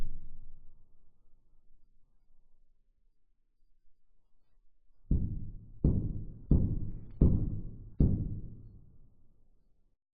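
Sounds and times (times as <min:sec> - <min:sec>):
knocking: 0:05.1 - 0:08.8.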